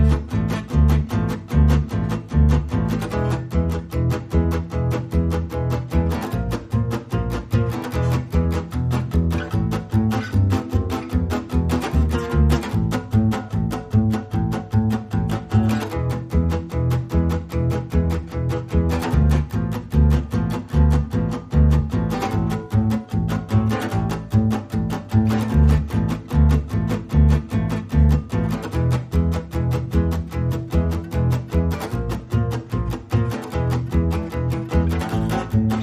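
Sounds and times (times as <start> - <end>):
acoustic rhythm guitar: 0.0 - 35.8
bass: 0.0 - 35.8.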